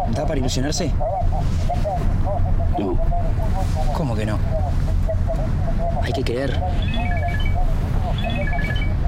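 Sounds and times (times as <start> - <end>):
speech: 0.1 - 7.1
telephone ringing with a repeating melody of bright electronic tones: 6.8 - 7.6, 8.1 - 8.9.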